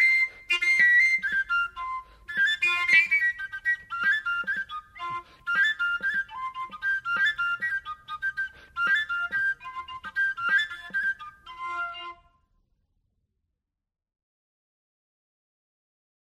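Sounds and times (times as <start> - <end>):
flute playing from Mazovia region: 0.0 - 12.4.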